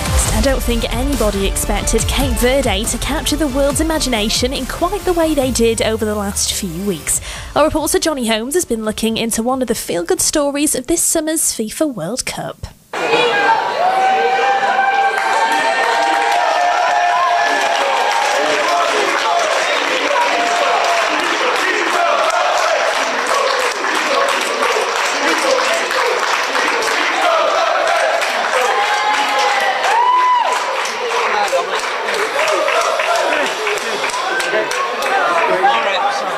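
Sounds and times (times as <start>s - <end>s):
crowd of family, neighbours and supporters cheering a footballer's homecoming: 0.0s - 7.2s, 12.9s - 36.3s
speech: 0.4s - 13.6s
applause: 14.7s - 36.3s.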